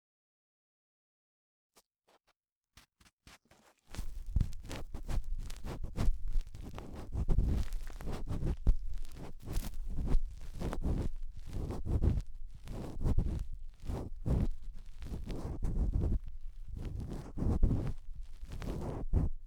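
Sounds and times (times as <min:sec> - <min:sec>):
cotton swab rubbing deep inside the right ear: 0:03.9 - 0:19.4.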